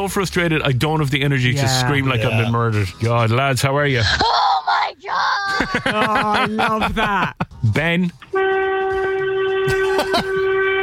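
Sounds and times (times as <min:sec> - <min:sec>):
speech: 0:00.0 - 0:04.4, 0:05.1 - 0:08.5
laughter: 0:05.4 - 0:07.6, 0:09.7 - 0:10.4
horn sound effect: 0:08.3 - 0:10.8.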